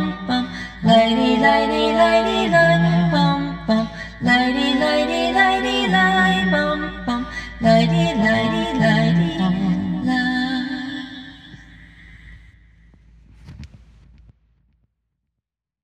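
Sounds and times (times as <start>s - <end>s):
Celtic sounding lullaby: 0.0s - 11.9s.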